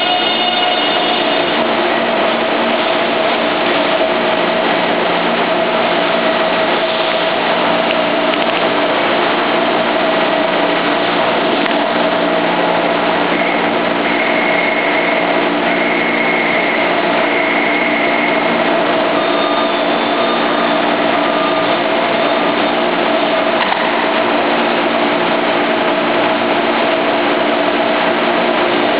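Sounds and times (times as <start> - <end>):
metro train arriving in Taipei: 0.0 - 28.9.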